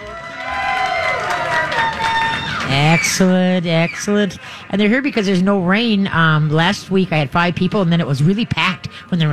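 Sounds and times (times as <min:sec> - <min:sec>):
live crowd cheering at Minnesota State Fair: 0:00.0 - 0:04.3
speech: 0:02.7 - 0:09.3.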